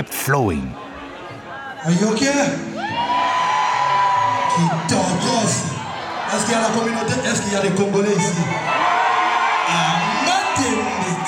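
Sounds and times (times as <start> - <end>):
speech: 0.0 - 0.8, 1.8 - 2.7, 4.6 - 8.9, 9.7 - 10.0
crowd cheering and whooping: 2.8 - 5.3, 8.6 - 11.2.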